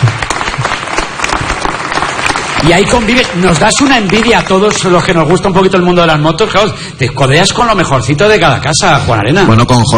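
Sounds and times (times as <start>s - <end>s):
crowd applause: 0.0s - 5.5s
speech: 2.6s - 9.9s.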